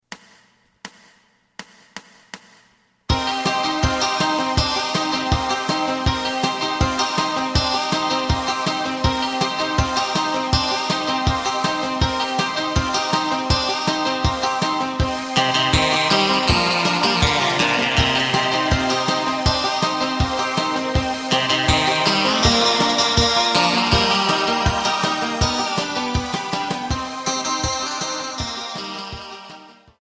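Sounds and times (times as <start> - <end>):
bass: 3.1 - 30.0.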